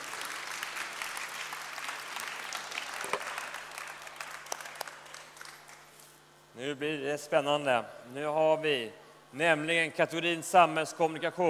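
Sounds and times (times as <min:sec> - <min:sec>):
audience applause: 0:00.0 - 0:05.8
speech: 0:06.6 - 0:11.4.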